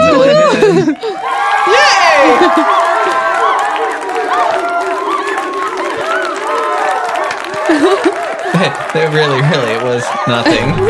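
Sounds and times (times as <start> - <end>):
laughter: 0.0 - 10.8
applause sound effect: 2.4 - 10.8
speech: 9.1 - 10.8.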